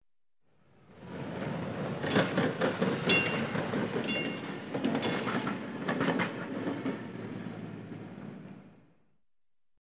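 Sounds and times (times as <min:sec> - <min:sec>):
old tram passing: 0:00.6 - 0:09.1
old tram bell ringing: 0:02.0 - 0:05.7.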